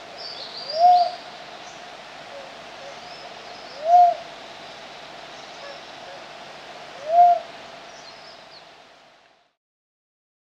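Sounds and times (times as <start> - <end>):
Philippine cuckoo dove: 0.0 - 4.3, 6.9 - 8.2.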